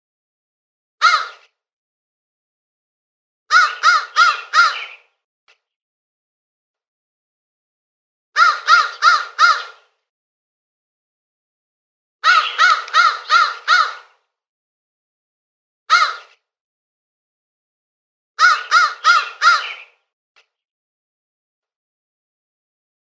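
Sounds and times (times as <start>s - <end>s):
crow cawing: 1.0s - 1.4s, 3.5s - 5.1s, 8.4s - 9.9s, 12.2s - 14.2s, 15.9s - 16.3s, 18.4s - 20.0s.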